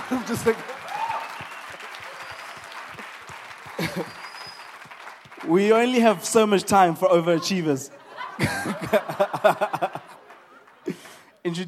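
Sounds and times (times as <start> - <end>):
audience clapping: 0.0 - 6.9, 8.4 - 11.6
speech: 0.1 - 0.8, 4.0 - 4.2, 5.5 - 9.9
laughter: 3.6 - 4.3, 7.3 - 11.4.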